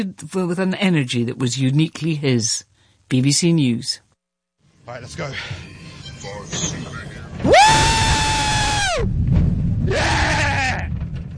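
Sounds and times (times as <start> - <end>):
speech: 0.0 - 4.0, 4.9 - 8.0
roller coaster ride: 6.2 - 11.3
roller coaster riders screaming: 7.5 - 9.1, 9.8 - 10.9.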